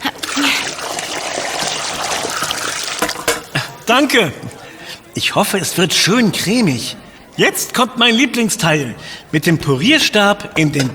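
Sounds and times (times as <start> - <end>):
cooking water poured off from a pot: 0.2 - 3.5
speech: 3.9 - 4.5, 5.2 - 10.9.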